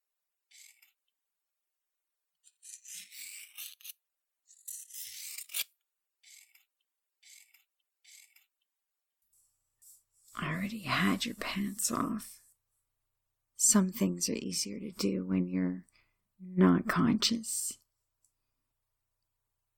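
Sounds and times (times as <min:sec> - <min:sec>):
scissors cutting through a shirt: 0:02.4 - 0:08.5
speech: 0:10.6 - 0:12.4, 0:13.7 - 0:17.8.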